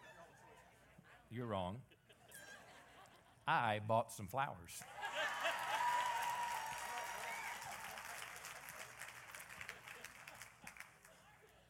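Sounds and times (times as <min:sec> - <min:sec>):
speech: 0:01.3 - 0:02.0, 0:03.5 - 0:05.0
audience clapping: 0:04.8 - 0:11.3.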